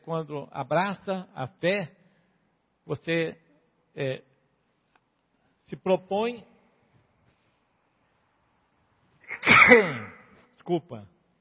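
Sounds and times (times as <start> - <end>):
speech: 0.0 - 2.0, 2.9 - 3.4, 4.0 - 4.3, 5.7 - 6.5, 9.7 - 11.1
loud sneeze: 9.2 - 10.5.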